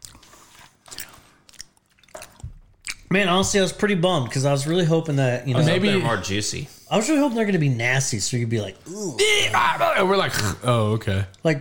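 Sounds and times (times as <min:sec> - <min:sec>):
crunching and chewing roasted crickets: 0:00.0 - 0:03.1
speech: 0:03.1 - 0:11.6.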